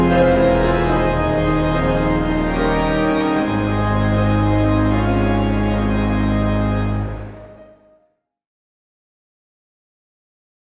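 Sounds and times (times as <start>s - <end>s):
organ prelude: 0.0s - 7.9s
piano prelude: 0.0s - 8.0s.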